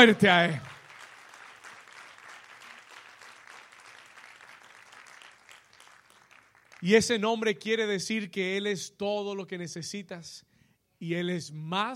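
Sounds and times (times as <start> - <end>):
speech: 0.0 - 0.7, 6.8 - 11.9
audience applause: 0.0 - 6.9.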